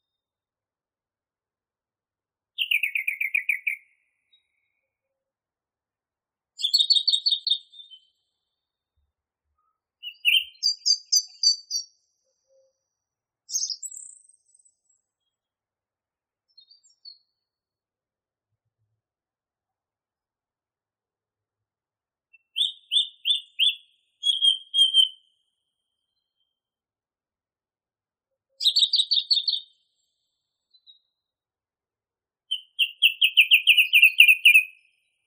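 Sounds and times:
song thrush song: 2.4s - 5.7s, 6.4s - 12.8s, 13.5s - 27.6s, 28.4s - 35.2s.

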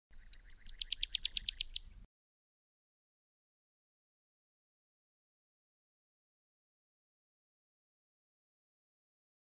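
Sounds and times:
Pyrrhuloxia giving a rapid chattering series of crisp high chip notes: 0.4s - 1.8s.

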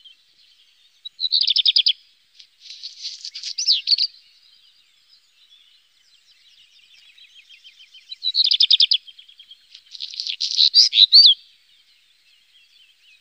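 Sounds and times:
black redstart song: 1.2s - 4.1s, 6.8s - 11.4s.

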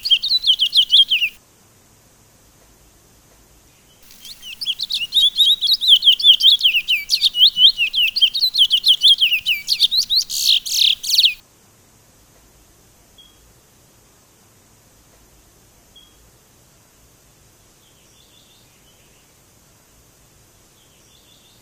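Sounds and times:
Sunda laughingthrush song of quick high-pitched slurred chirps: 0.0s - 1.4s, 4.0s - 11.4s.

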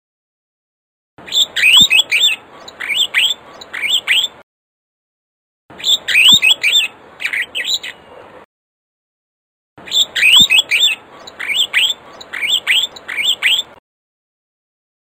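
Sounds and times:
African starling singing with whistled notes: 1.2s - 4.4s, 5.7s - 8.1s, 9.8s - 13.8s.

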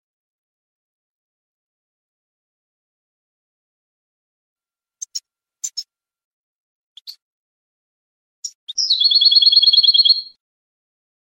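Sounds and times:
European goldfinch chirping and trilling: 5.0s - 5.9s, 8.4s - 10.3s.

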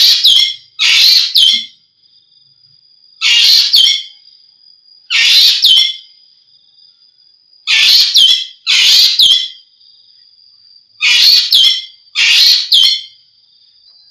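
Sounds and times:
Javan green magpie whistles and rasps: 0.0s - 1.7s, 3.2s - 4.1s, 5.1s - 6.0s, 7.7s - 9.6s, 11.0s - 13.2s.

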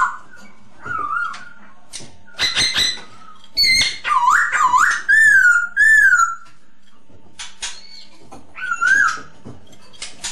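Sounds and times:
masked laughingthrush whistled lure song: 0.0s - 1.7s, 2.3s - 6.5s, 7.7s - 9.4s.

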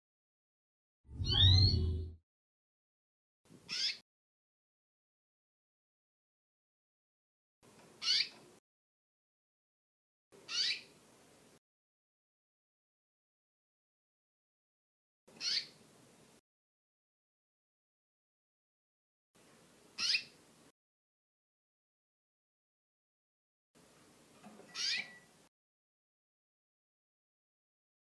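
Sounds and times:
female canary singing: 1.2s - 2.2s, 3.7s - 4.0s, 8.0s - 8.4s, 10.4s - 11.0s, 15.3s - 15.8s, 20.0s - 20.4s, 24.7s - 25.3s.

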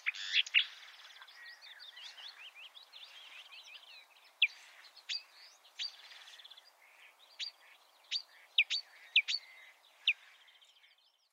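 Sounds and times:
marsh warbler song: 0.0s - 11.3s.

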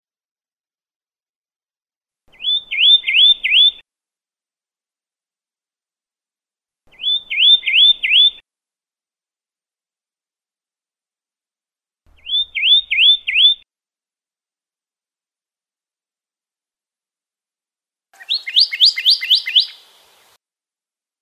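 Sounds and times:
Pyrrhuloxia song with downslurred whistles and rapid trill: 2.3s - 3.8s, 6.9s - 8.4s, 12.2s - 13.6s, 18.2s - 19.9s.

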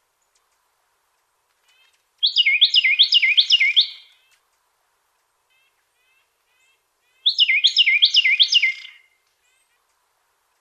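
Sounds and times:
Carolina wren singing repeated two-part phrases: 1.7s - 4.4s, 5.4s - 9.9s.

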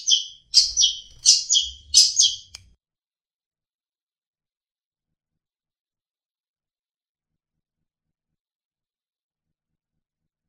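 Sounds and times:
long-tailed shrike trilling: 0.0s - 2.6s.

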